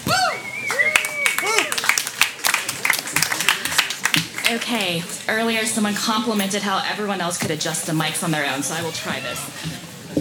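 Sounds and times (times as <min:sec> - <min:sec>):
excited whoops and cheers: 0:00.0 - 0:01.8
audience applause for a performer: 0:00.6 - 0:04.8
speech: 0:04.5 - 0:09.9.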